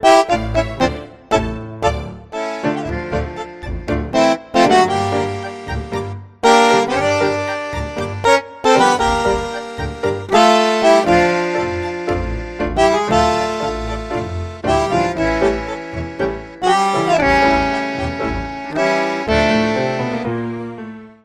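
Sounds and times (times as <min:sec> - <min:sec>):
bandoneon: 0:00.0 - 0:21.2.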